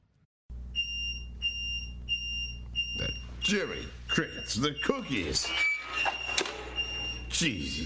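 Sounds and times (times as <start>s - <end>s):
smoke alarm beeping in kitchen: 0.7s - 7.8s
speech: 3.0s - 6.2s, 7.3s - 7.8s.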